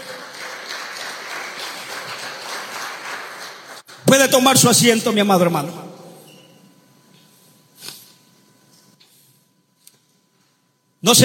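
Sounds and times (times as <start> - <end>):
audience applause: 0.0 - 4.0
speech: 4.1 - 5.8, 11.1 - 11.2.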